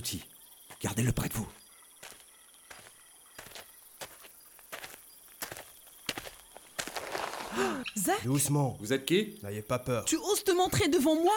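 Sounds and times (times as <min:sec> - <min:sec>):
speech: 0:00.0 - 0:01.6, 0:07.6 - 0:11.3
footsteps approaching: 0:00.6 - 0:07.8.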